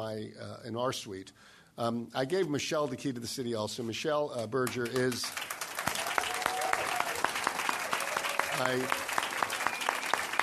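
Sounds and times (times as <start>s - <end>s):
speech: 0.1s - 5.6s, 8.6s - 9.0s
crowd applauding: 4.8s - 10.4s.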